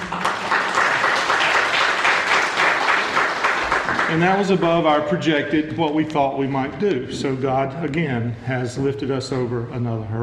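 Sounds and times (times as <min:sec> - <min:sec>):
audience applause: 0:00.0 - 0:05.0
speech: 0:04.1 - 0:10.2.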